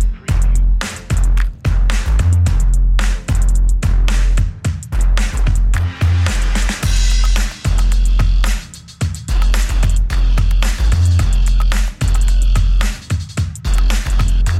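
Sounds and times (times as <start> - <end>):
drums and bass: 0.0 - 14.5.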